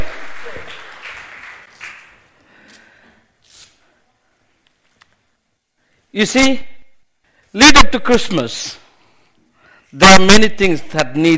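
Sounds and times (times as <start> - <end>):
round of applause: 0.0 - 2.4
speech: 6.2 - 6.7, 7.6 - 8.8, 9.9 - 11.3.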